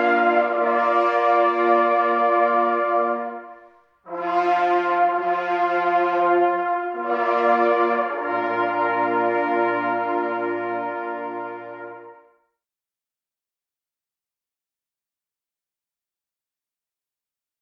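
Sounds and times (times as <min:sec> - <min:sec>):
fanfare: 0:00.0 - 0:12.4.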